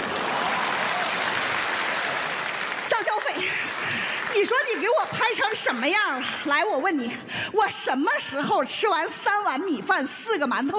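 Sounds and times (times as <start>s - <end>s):
thunderous applause: 0.0s - 6.3s
speech: 4.7s - 10.7s.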